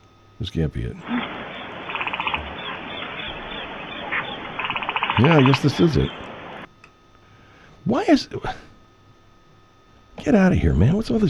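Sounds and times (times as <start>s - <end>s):
speech: 0.4s - 1.4s, 5.2s - 6.2s, 7.8s - 8.7s, 10.2s - 11.2s
crickets chirping in a field: 1.0s - 6.7s.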